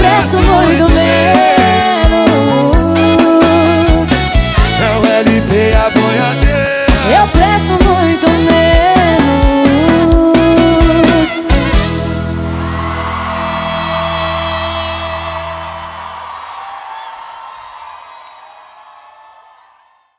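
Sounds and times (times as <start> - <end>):
live sertanejo music: 0.0 - 16.1.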